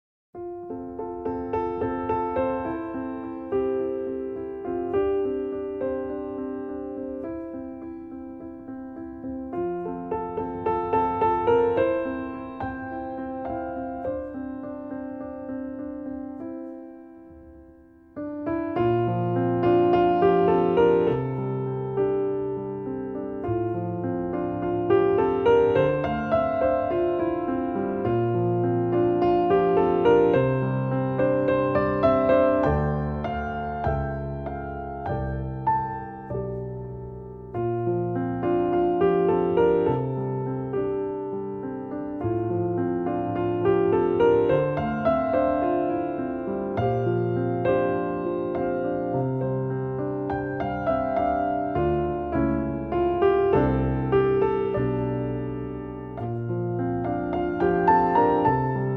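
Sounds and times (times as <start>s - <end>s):
solo piano: 0.3s - 58.9s.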